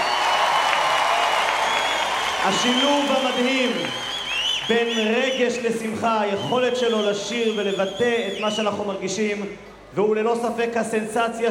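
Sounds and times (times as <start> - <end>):
audience applauding to welcome a Hasidic singer: 0.0 - 5.4
speech: 2.4 - 4.1, 4.7 - 11.4.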